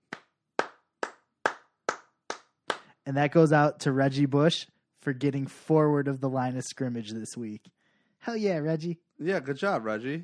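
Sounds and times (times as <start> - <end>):
single person clapping hands in studio: 0.0 - 3.0
speech: 3.1 - 10.2.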